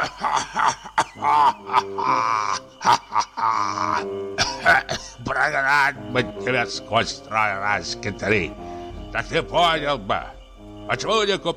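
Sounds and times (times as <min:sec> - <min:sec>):
old man's wheezing cough: 0:00.0 - 0:05.2
speech: 0:06.1 - 0:11.5
old man drawing in air: 0:08.6 - 0:09.1.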